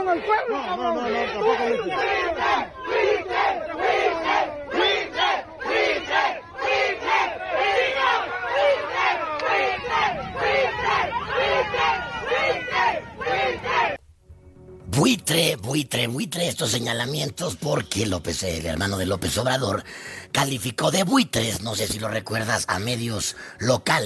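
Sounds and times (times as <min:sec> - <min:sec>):
angry crowd shouting at an official: 0:00.0 - 0:14.0
speech: 0:00.1 - 0:03.2, 0:15.0 - 0:24.0.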